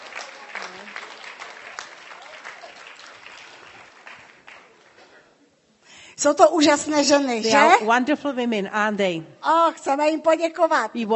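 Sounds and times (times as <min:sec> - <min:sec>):
audience applauding at a Bible-centred gathering: 0:00.0 - 0:05.2
speech: 0:06.2 - 0:11.1.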